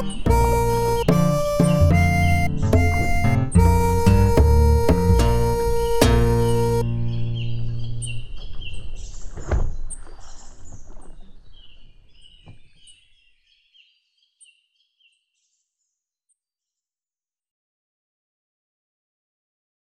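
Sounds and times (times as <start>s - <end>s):
practice melody in B flat: 0.0s - 8.5s.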